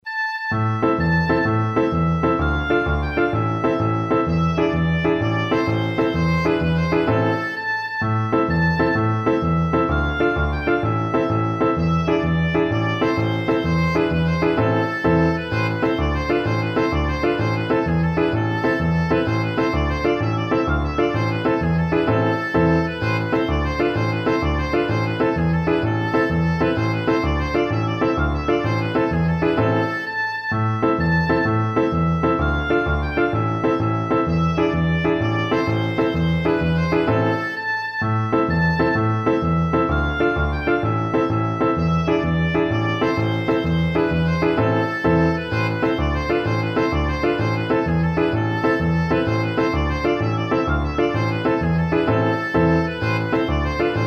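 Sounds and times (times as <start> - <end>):
oboe playing a tarantella: 0.0 - 54.0.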